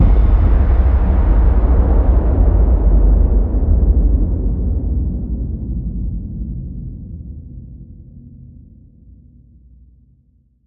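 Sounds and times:
low hit: 0.0 - 6.2.

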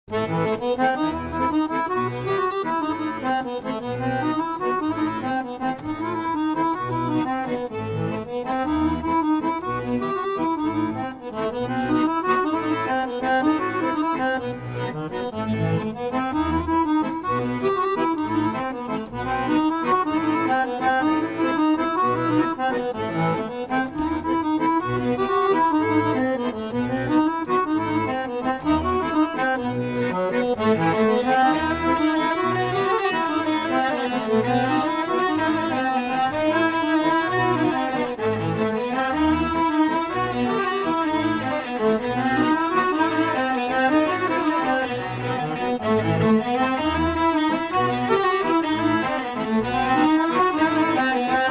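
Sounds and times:
Bulgarian traditional music: 0.1 - 51.5.

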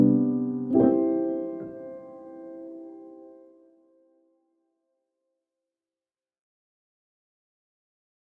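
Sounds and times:
piano: 0.0 - 4.4.

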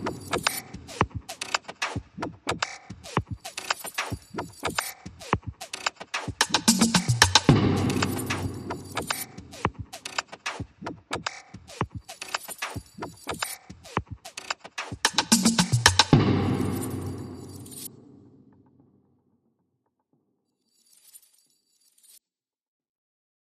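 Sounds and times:
beats: 0.0 - 17.9.

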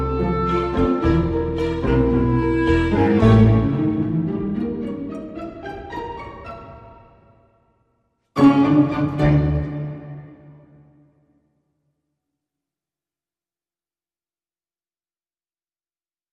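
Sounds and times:
tango music without percussion: 0.0 - 7.3, 8.4 - 11.0.

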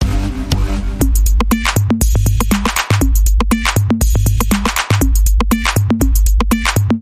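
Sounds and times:
beat sync dance bumper: 0.0 - 6.9.

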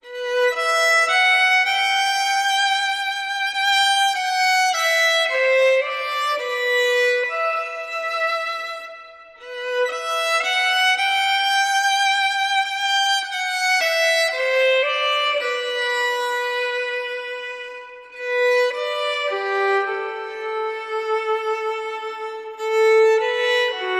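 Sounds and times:
violin: 0.0 - 23.9.

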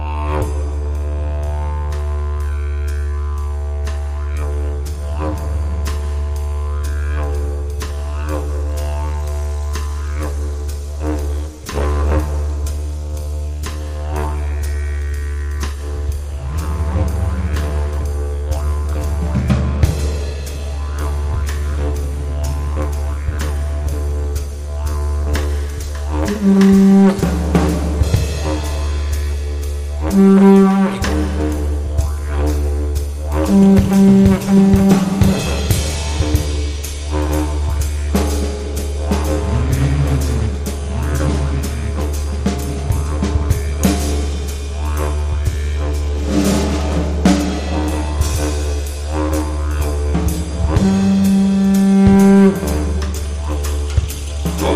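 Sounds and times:
jazz fusion music: 0.2 - 54.7.

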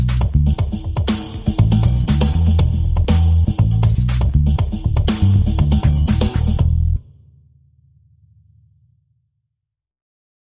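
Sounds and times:
percussion: 0.0 - 7.0
bass: 0.0 - 7.2.

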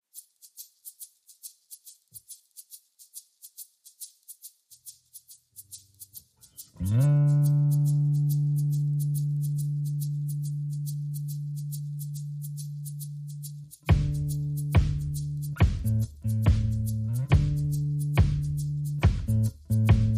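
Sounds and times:
bass: 6.6 - 20.1
drums: 13.9 - 20.1.

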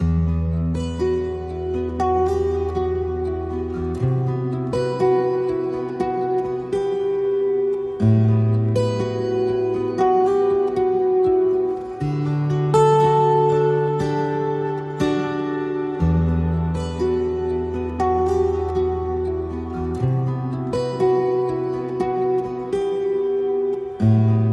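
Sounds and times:
guitar: 0.0 - 24.5.

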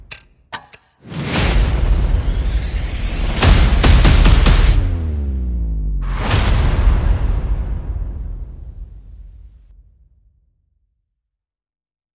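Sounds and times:
percussion: 0.0 - 4.8
bass: 1.2 - 9.7.

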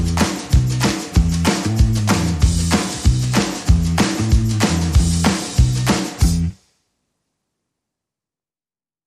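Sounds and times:
bass: 0.0 - 6.6
drums: 0.0 - 6.7.

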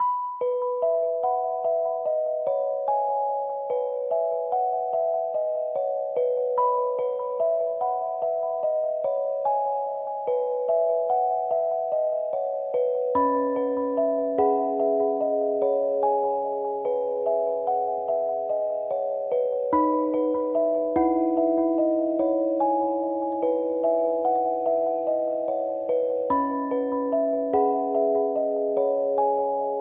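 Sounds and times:
sequenced lullaby melody: 0.0 - 29.7.

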